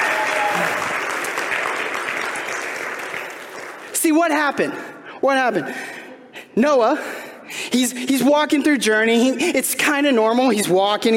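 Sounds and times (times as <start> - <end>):
audience applause: 0.0 - 3.9
speech: 4.1 - 6.0, 6.6 - 11.1.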